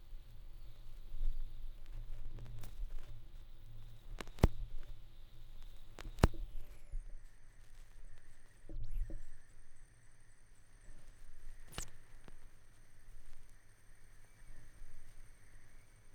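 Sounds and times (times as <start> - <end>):
vinyl record noise: 0.0 - 6.9, 7.6 - 9.0, 11.0 - 13.6.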